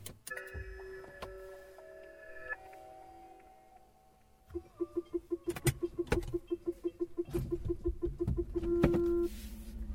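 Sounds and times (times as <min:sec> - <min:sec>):
electric car's synthetic sci-fi warning sound: 0:04.5 - 0:09.2.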